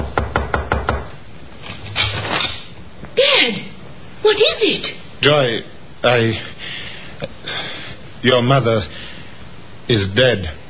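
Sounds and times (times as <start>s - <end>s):
knocks on a wooden bedroom door: 0.0s - 1.1s
speech: 3.4s - 3.7s, 4.3s - 7.3s, 8.2s - 9.1s, 9.9s - 10.6s.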